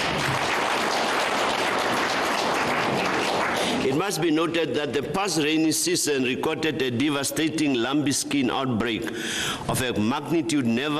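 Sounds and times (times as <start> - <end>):
large audience applause: 0.0 - 4.0
speech: 4.1 - 10.9.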